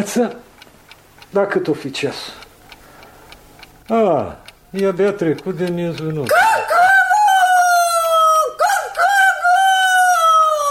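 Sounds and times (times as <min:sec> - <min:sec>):
speech: 0:00.0 - 0:00.5, 0:01.3 - 0:02.4, 0:03.9 - 0:06.4
rooster crowing: 0:06.3 - 0:10.6.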